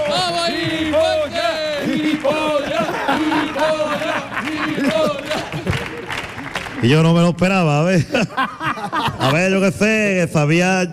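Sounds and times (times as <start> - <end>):
laughter: 0.0 - 6.8, 7.9 - 9.7
audience applause: 0.0 - 7.3
crowd cheering: 0.0 - 7.4
speech: 6.8 - 10.9.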